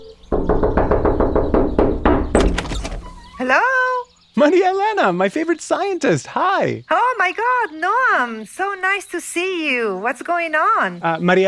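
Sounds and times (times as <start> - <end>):
knocking on a door: 0.3 - 3.4
speech: 3.4 - 3.8, 4.4 - 11.4.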